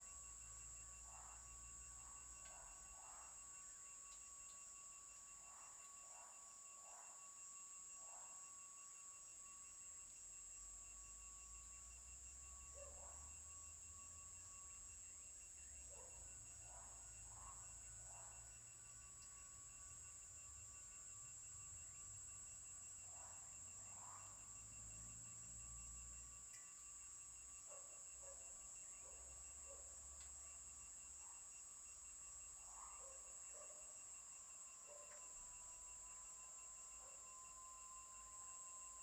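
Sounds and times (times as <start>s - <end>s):
crickets chirping: 0.0s - 39.0s
distant chorus of cicadas at the end of the street in early evening: 0.0s - 39.0s.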